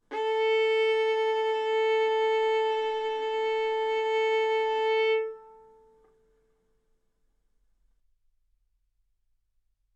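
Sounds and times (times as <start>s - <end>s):
violin bowed arco notes: 0.0s - 6.1s.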